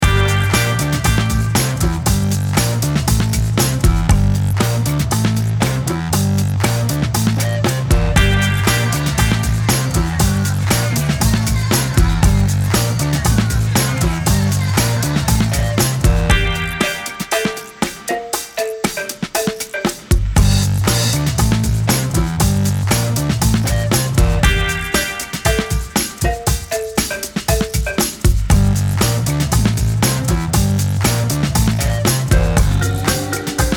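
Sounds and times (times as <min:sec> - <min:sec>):
instrumental music: 0:00.0 - 0:33.7.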